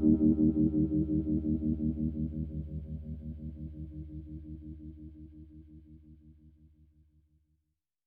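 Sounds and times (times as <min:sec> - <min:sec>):
Stratocaster electric guitar: 0:00.0 - 0:03.8.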